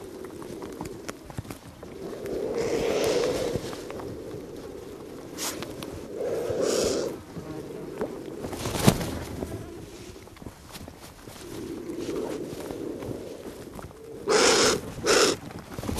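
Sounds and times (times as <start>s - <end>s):
American black vulture hissing: 1.8s - 10.2s, 11.4s - 15.4s.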